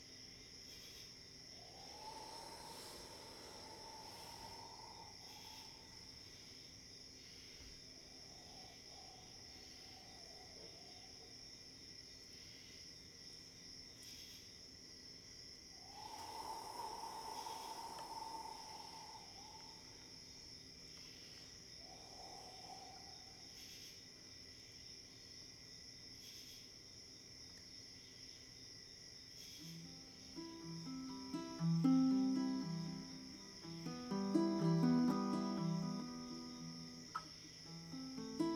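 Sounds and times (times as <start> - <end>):
crickets chirping: 0.0 - 38.5
plucked strings: 30.4 - 37.0, 37.8 - 38.5.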